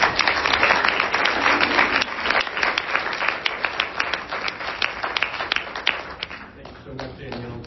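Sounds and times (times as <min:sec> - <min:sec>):
audience applause: 0:00.0 - 0:07.5.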